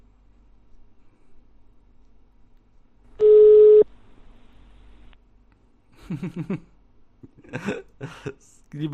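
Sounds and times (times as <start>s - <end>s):
telephone tone while a number is redialed: 3.2s - 3.9s.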